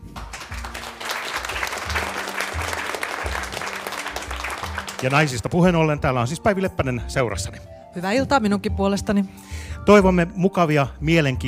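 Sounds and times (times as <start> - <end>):
audience applause: 0.0 - 5.7
speech: 5.0 - 11.4.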